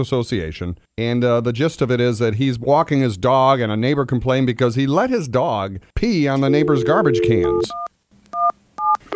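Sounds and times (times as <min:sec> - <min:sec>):
speech: 0:00.0 - 0:07.9
touch-tone keypad beeps: 0:06.4 - 0:09.0.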